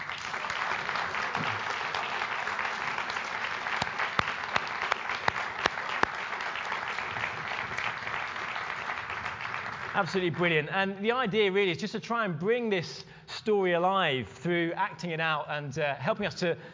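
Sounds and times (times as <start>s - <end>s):
audience applause: 0.0s - 10.7s
speech: 10.0s - 16.7s.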